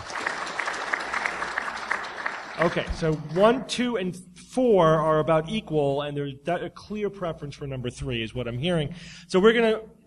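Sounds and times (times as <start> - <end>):
audience applause: 0.0 - 3.6
speech: 2.6 - 10.0.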